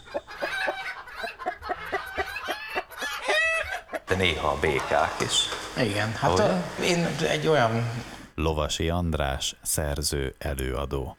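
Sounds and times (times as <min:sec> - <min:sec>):
chickens clucking, sounding like laughter: 0:00.0 - 0:08.2
speech: 0:04.1 - 0:11.1.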